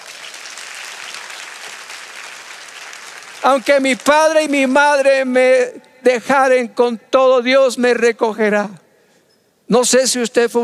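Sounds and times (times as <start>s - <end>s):
audience applauding: 0.0s - 4.8s
speech: 3.4s - 8.8s, 9.7s - 10.6s.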